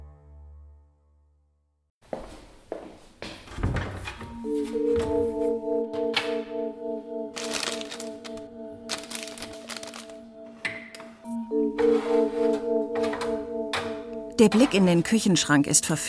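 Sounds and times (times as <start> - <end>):
low tonal drone: 4.3 - 14.8
bag of chocolates crinkling: 7.4 - 10.2
speech: 14.4 - 16.0.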